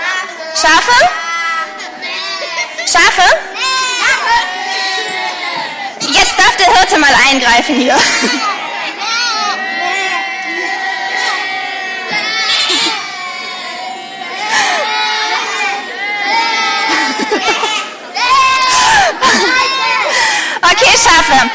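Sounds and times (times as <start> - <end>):
group shouting during a popcorn fight: 0.0 - 6.7, 8.0 - 21.5
laughter: 0.0 - 7.0, 7.6 - 21.5
speech: 0.6 - 1.2, 2.9 - 3.5, 6.6 - 8.5, 21.0 - 21.5.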